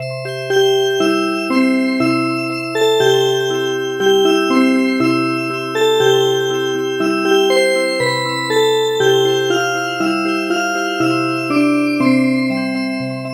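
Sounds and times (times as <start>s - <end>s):
music box: 0.0s - 13.3s.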